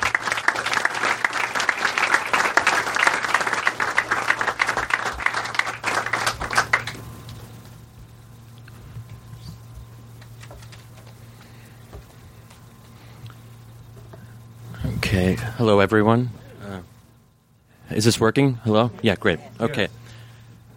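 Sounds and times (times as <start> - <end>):
audience applause at a Politics and Prose author talk: 0.0 - 7.3
quiet low hum: 0.0 - 20.7
speech: 15.4 - 16.4, 18.0 - 20.0.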